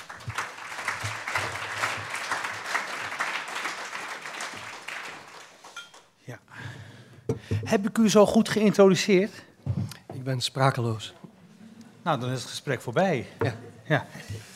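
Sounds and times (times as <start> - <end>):
audience applause: 0.0 - 5.8
speech: 7.5 - 9.5, 10.3 - 11.2, 12.0 - 14.5.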